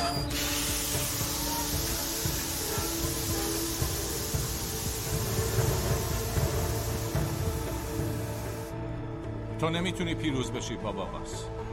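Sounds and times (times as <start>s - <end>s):
steam hissing from a released pressure valve: 0.2s - 8.7s
speech: 9.6s - 11.7s.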